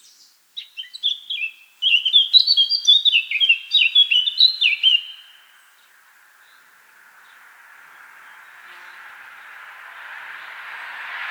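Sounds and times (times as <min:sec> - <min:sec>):
Eurasian blackcap singing: 0:00.0 - 0:06.6.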